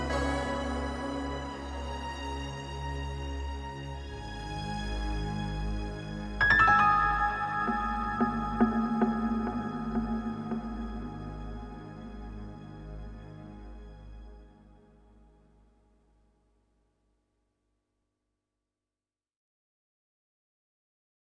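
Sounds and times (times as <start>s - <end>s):
music: 0.0s - 17.0s.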